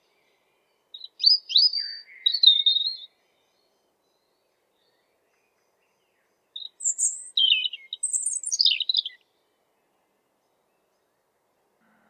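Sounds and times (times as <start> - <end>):
European robin singing high liquid twitters and sweet trills: 0.0 - 9.2.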